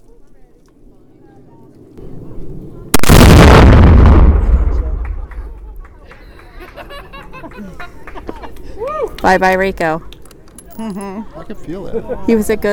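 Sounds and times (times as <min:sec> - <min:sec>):
people talking quietly: 0:00.0 - 0:03.0, 0:04.4 - 0:12.7
explosive blast shattering a piñata on a hill: 0:02.9 - 0:05.8
laughter: 0:05.0 - 0:09.0
speech: 0:09.2 - 0:10.1, 0:10.8 - 0:12.7.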